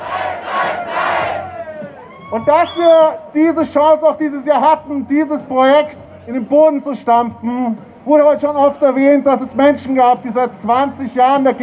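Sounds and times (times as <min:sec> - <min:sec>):
protest crowd chanting a slogan in unison: 0:00.0 - 0:01.9
speech: 0:02.3 - 0:11.6.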